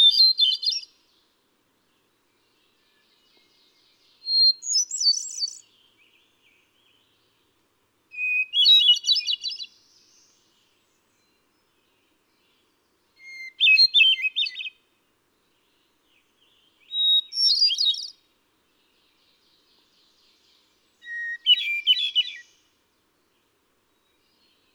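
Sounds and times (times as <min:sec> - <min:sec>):
hermit thrush singing: 0:00.0 - 0:01.3, 0:01.9 - 0:07.5, 0:08.1 - 0:14.8, 0:15.4 - 0:24.7.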